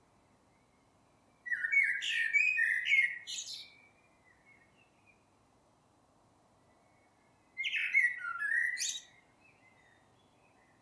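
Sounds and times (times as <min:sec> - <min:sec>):
Eurasian blackbird Turdus merula singing mellow fluting phrases: 0:01.5 - 0:03.8, 0:07.6 - 0:10.0.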